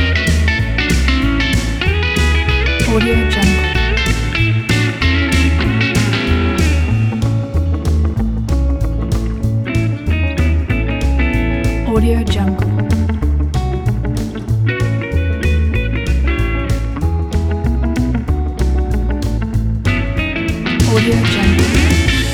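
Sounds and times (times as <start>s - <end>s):
rockabilly guitar: 0.0s - 22.3s.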